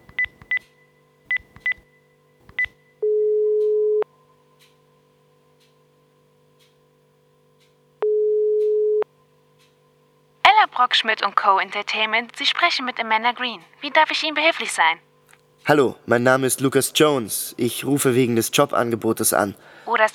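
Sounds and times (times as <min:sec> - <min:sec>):
long steady telephone ringing tone: 0:03.0 - 0:04.0, 0:08.0 - 0:09.1
speech: 0:10.8 - 0:15.1, 0:15.7 - 0:20.1.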